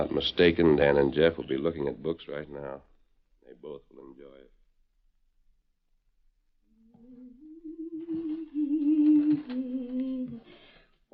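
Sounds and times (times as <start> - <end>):
speech: 0.0 - 2.9, 3.6 - 4.4
woman humming: 6.7 - 10.5.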